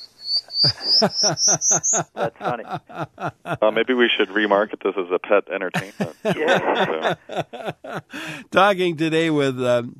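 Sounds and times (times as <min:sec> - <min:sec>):
prairie warbler song recording: 0:00.0 - 0:02.1
laughter: 0:00.5 - 0:08.6
speech: 0:00.6 - 0:09.9.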